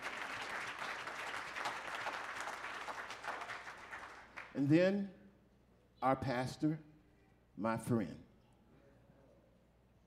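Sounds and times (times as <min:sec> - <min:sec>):
audience applause: 0:00.0 - 0:04.5
speech: 0:04.6 - 0:05.2, 0:06.0 - 0:06.9, 0:07.6 - 0:08.3.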